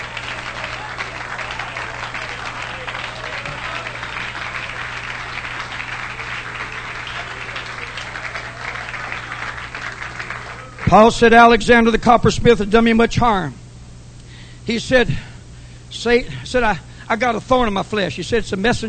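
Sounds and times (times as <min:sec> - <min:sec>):
audience clapping hands: 0:00.0 - 0:11.1
speech: 0:10.9 - 0:13.6, 0:14.7 - 0:15.3, 0:15.9 - 0:18.8.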